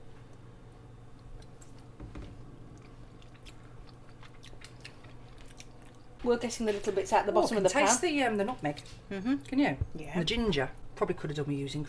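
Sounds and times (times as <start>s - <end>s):
low steady hum: 0.0s - 11.8s
person chewing a bite of plum pudding: 1.1s - 2.0s, 2.6s - 6.2s
speech: 6.2s - 11.8s.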